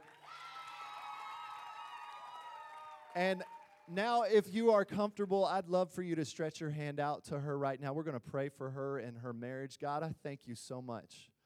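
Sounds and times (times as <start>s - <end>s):
whoops and high-pitched shouts: 0.0s - 3.9s
audience clapping: 0.0s - 4.0s
speech: 3.1s - 11.3s.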